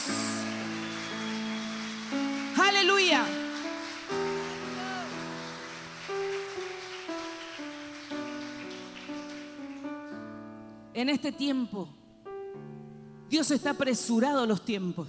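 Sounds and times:
audience applauding: 0.0s - 10.4s
speech: 11.0s - 12.0s, 13.3s - 15.0s.

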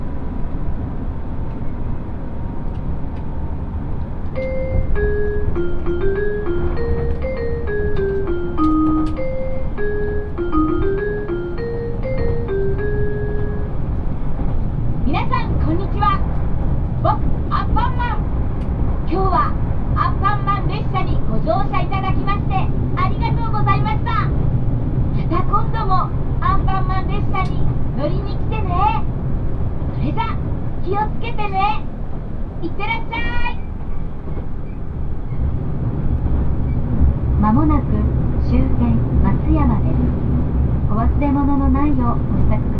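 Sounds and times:
Yosan Line limited express Ishizuchi 101 train running from Imabari to Matsuyama: 0.0s - 42.7s.

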